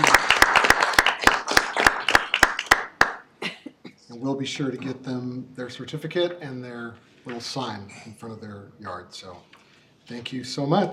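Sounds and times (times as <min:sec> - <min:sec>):
group applauding: 0:00.0 - 0:03.3
loud rhythmic hand claps: 0:00.0 - 0:03.3
speech: 0:04.4 - 0:10.9.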